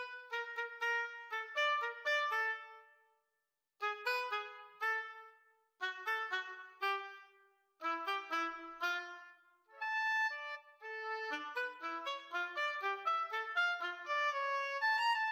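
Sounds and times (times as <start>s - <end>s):
oboe in a duet: 0.0s - 2.9s, 3.8s - 15.3s
clarinet in a duet: 0.0s - 3.2s, 3.8s - 15.3s.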